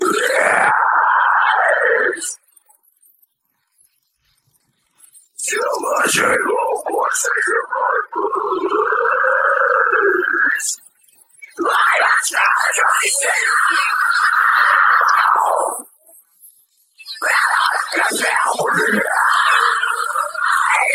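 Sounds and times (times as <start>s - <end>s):
vocals: 0.0s - 2.4s, 5.4s - 10.8s, 11.5s - 16.0s, 17.0s - 20.9s.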